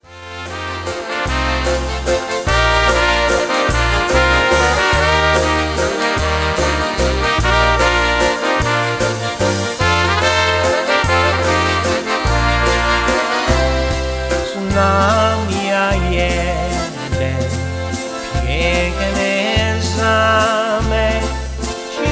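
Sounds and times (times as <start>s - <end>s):
waltz music: 0.0s - 22.1s.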